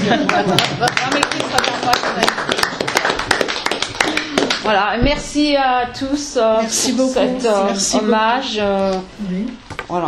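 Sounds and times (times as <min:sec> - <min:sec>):
speech: 0:00.1 - 0:10.0
audience applauding: 0:00.2 - 0:04.7.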